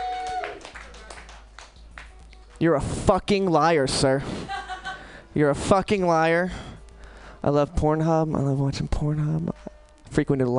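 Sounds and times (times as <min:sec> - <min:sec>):
audience clapping: 0:00.0 - 0:02.5
speech: 0:02.6 - 0:04.4, 0:05.4 - 0:06.6, 0:07.4 - 0:10.5
laughter: 0:04.2 - 0:05.2.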